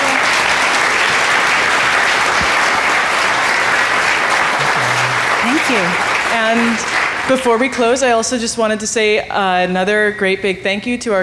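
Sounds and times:
audience applause: 0:00.0 - 0:07.9
speech: 0:05.7 - 0:11.2.

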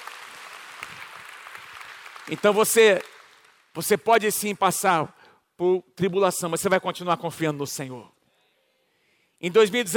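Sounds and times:
audience applauding: 0:00.0 - 0:03.7
speech: 0:02.3 - 0:03.1, 0:03.7 - 0:08.2, 0:09.4 - 0:09.9.

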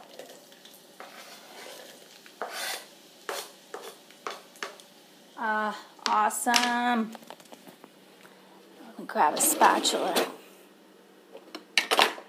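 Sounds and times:
onions sizzling in hot oil for fried rice: 0:00.0 - 0:06.6
speech: 0:05.4 - 0:07.3, 0:09.1 - 0:10.4.

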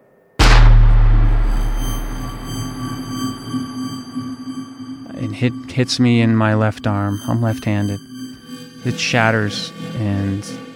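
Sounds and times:
gunshot: 0:00.4 - 0:04.4
high ringing tone: 0:00.4 - 0:10.0
speech: 0:05.4 - 0:08.1, 0:08.8 - 0:10.6.

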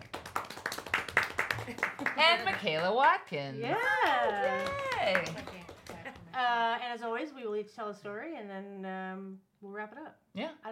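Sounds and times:
clapping: 0:00.0 - 0:06.3
speech: 0:02.2 - 0:05.6, 0:06.4 - 0:10.7.

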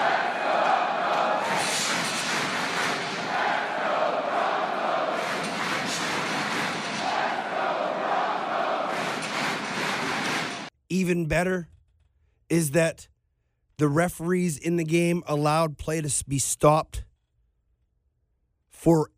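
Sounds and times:
stadium crowd chanting: 0:00.0 - 0:10.7
speech: 0:11.3 - 0:11.7, 0:12.5 - 0:13.1, 0:13.8 - 0:17.0, 0:18.8 - 0:19.1.

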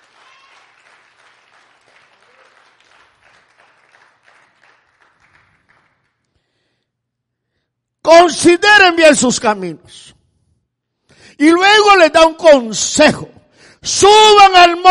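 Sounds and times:
audience clapping hands: 0:00.0 - 0:06.6
speech: 0:08.1 - 0:10.2, 0:11.4 - 0:14.8.

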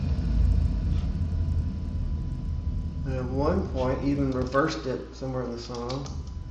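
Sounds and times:
big explosion: 0:00.0 - 0:04.7
speech: 0:03.1 - 0:06.3.

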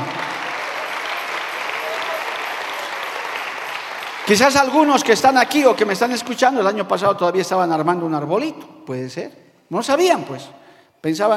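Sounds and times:
audience applauding: 0:00.0 - 0:06.3
speech: 0:04.3 - 0:11.3.

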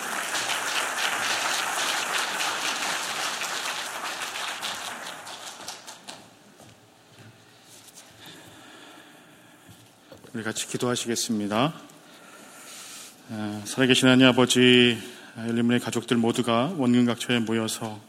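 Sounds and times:
crowd applause: 0:00.0 - 0:06.0
speech: 0:10.4 - 0:11.9, 0:13.3 - 0:18.0.

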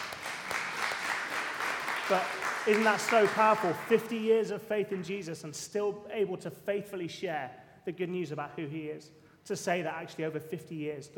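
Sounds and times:
round of applause: 0:00.0 - 0:04.1
speech: 0:02.1 - 0:11.1.

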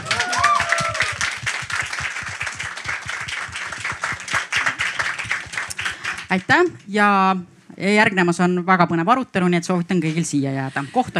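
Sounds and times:
audience applause at an event: 0:00.0 - 0:06.7
speech: 0:06.3 - 0:11.1.

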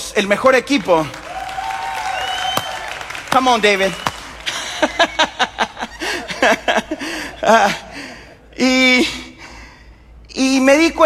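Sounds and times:
speech: 0:00.2 - 0:01.2, 0:03.3 - 0:04.1, 0:06.9 - 0:07.8, 0:08.6 - 0:09.2, 0:10.4 - 0:11.0
audience applause: 0:01.0 - 0:06.2
laughter: 0:03.4 - 0:08.2.

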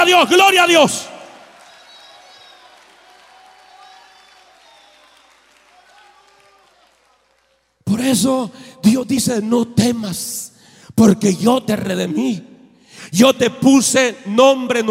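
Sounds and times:
speech: 0:00.0 - 0:01.1, 0:08.0 - 0:14.8
audience applause: 0:00.0 - 0:07.8.

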